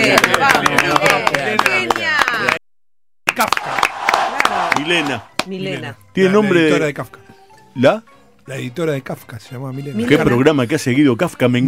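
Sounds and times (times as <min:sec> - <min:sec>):
speech: 0:00.0 - 0:00.3, 0:04.9 - 0:07.2, 0:07.8 - 0:11.6
applause: 0:00.0 - 0:02.6, 0:03.3 - 0:05.5.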